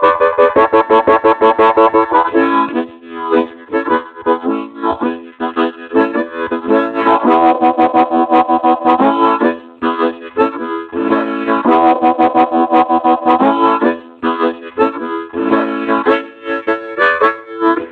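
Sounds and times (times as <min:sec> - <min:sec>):
harmonica playing minimal riffs: 0:00.0 - 0:17.9.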